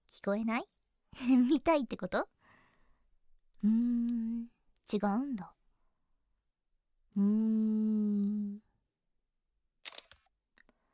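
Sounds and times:
speech: 0.2 - 2.4, 3.6 - 5.6, 7.1 - 8.6
camera shutter taking a selfie: 9.8 - 10.3.

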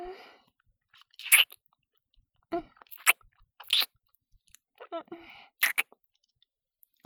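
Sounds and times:
person urinating: 1.1 - 1.6, 5.6 - 5.9.

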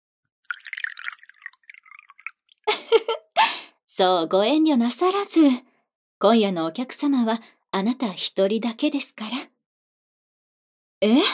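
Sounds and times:
sake poured from a bottle into a cup: 0.4 - 2.9
speech: 4.0 - 9.5, 11.0 - 11.3.

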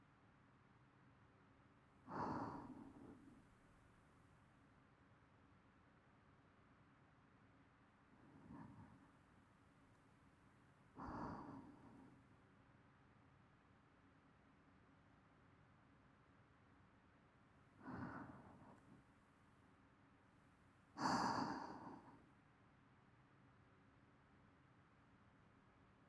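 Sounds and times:
person breathing in sleep loop: 2.1 - 3.5, 8.3 - 9.0, 11.0 - 12.2, 17.8 - 19.0, 21.0 - 22.2.

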